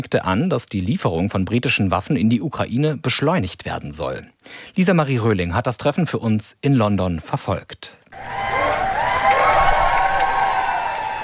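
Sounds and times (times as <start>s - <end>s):
speech: 0.0s - 8.4s
crowd applause and cheering outside Downing Street: 8.1s - 11.2s.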